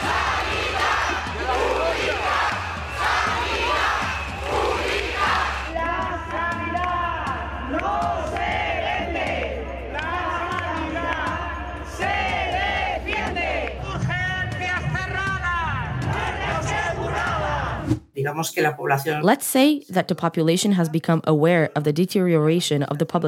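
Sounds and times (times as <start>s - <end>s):
protest crowd chanting and shouting: 0.0s - 18.0s
speech: 18.4s - 23.2s.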